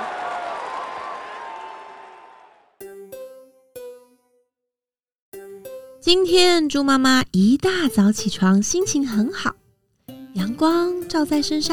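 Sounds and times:
applause: 0:00.0 - 0:02.8
speech: 0:06.0 - 0:09.6, 0:10.4 - 0:11.7.

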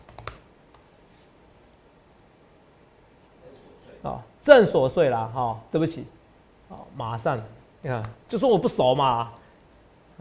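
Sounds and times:
typing on computer keyboard: 0:00.0 - 0:00.9
speech: 0:04.0 - 0:06.2, 0:07.0 - 0:09.4.

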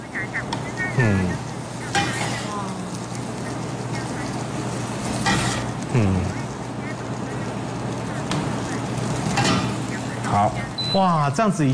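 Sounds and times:
stir-fried food sizzling in a wok: 0:00.0 - 0:11.7
speech: 0:01.0 - 0:01.5, 0:11.0 - 0:11.7
food scooped from the wok with sharp scrapes: 0:05.2 - 0:05.7.

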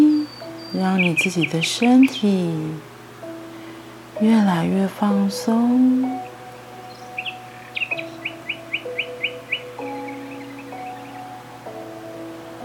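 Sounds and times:
bird tweeting: 0:00.0 - 0:02.8, 0:06.0 - 0:11.4
steady hum of sustained shifting low tones: 0:00.0 - 0:12.6
speech: 0:00.7 - 0:02.9, 0:04.2 - 0:06.2.

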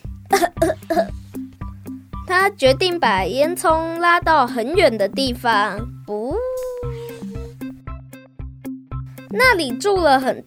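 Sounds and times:
rough throaty coughs: 0:00.3 - 0:01.2
speech: 0:02.4 - 0:06.2, 0:09.4 - 0:10.4.

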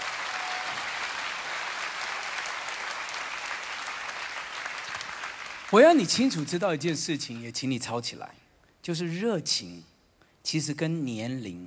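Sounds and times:
audience applauding: 0:00.0 - 0:06.7
speech: 0:05.7 - 0:11.6.

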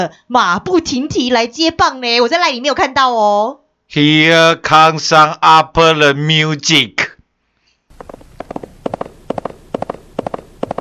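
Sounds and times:
speech: 0:00.0 - 0:07.0
galloping horse hooves: 0:07.9 - 0:10.8.

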